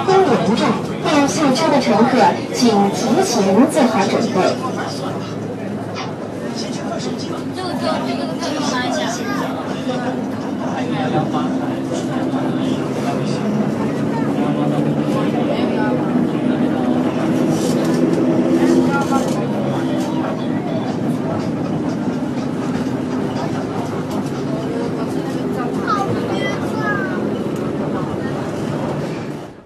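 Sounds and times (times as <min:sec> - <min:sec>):
speech: 0:00.0 - 0:05.0
city bus engine rumble: 0:00.0 - 0:29.6.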